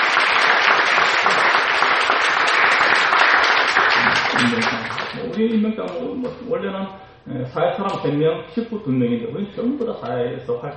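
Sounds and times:
audience applause: 0.0 - 5.3
speech: 4.4 - 10.7.

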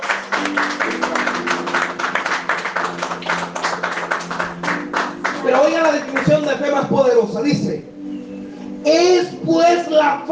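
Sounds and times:
audience applause: 0.0 - 6.3
speech: 0.5 - 1.2, 5.5 - 7.9, 8.8 - 10.3.

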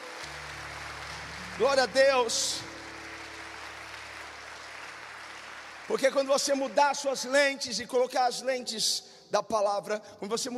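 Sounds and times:
audience applause in a large room: 0.0 - 7.4
speech: 1.6 - 2.7, 5.9 - 10.5.

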